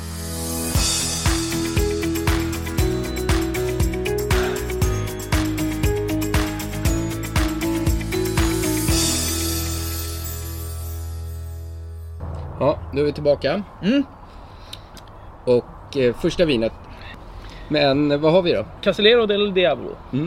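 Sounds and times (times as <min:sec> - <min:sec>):
musical jingle opening a wine-tasting show: 0:00.0 - 0:12.2
speech: 0:13.0 - 0:14.2, 0:15.4 - 0:16.8, 0:17.7 - 0:20.2.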